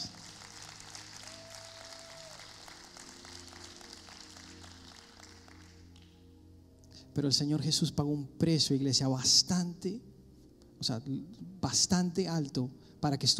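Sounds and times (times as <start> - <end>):
church audience applause: 0.0 - 6.0
speech: 7.2 - 10.1, 10.8 - 13.3.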